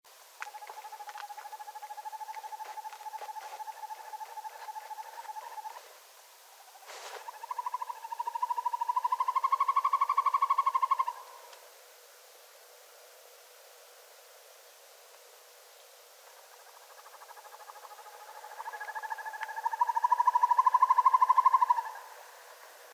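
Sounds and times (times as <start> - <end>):
northern hawk owl typical call: 0.4 - 6.0, 6.6 - 11.6, 16.3 - 22.8.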